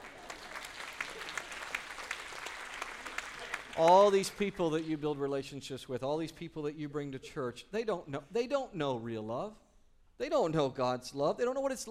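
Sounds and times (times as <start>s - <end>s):
audience applause: 0.0s - 4.9s
speech: 3.8s - 9.6s, 10.2s - 11.8s.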